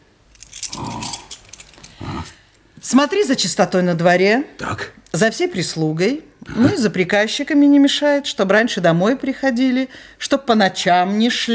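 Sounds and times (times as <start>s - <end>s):
bunch of house keys jangling as they are handed over: 0.3s - 2.6s
speech: 2.9s - 11.5s.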